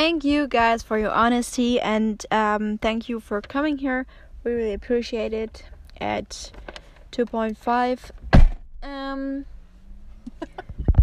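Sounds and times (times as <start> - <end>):
speech: 0.0 - 8.2, 8.8 - 9.5
man falling over with his chair: 8.3 - 8.6.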